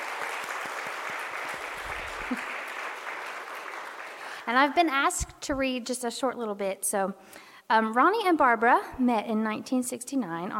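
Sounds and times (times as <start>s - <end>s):
audience clapping: 0.0s - 4.7s
speech: 4.5s - 10.5s.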